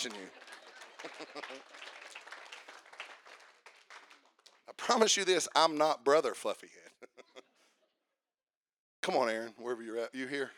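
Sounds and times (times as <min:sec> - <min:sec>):
speech: 0:00.0 - 0:00.4, 0:01.0 - 0:02.0, 0:04.7 - 0:07.0, 0:09.0 - 0:10.5
laughter: 0:00.0 - 0:02.0, 0:06.6 - 0:07.6
audience clapping: 0:00.0 - 0:05.6.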